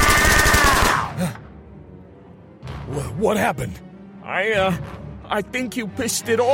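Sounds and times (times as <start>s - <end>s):
automatic gunfire: 0.0s - 1.1s
speech: 3.0s - 6.5s.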